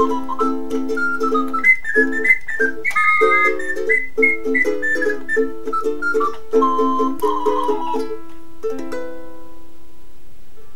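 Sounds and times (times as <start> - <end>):
march music: 0.0 - 8.2.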